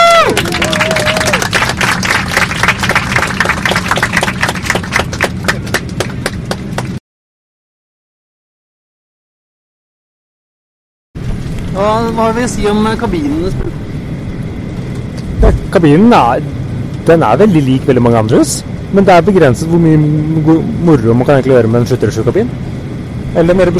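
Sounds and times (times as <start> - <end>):
people clapping: 0.0 - 7.0
speech: 11.8 - 13.9, 15.7 - 22.7, 23.3 - 23.7.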